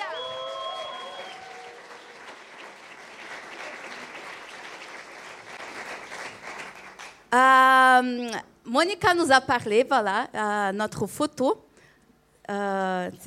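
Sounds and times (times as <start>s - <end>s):
tonal whistles or cheers: 0.0s - 2.4s
crowd applause: 0.0s - 7.2s
speech: 7.3s - 11.6s, 12.5s - 13.2s.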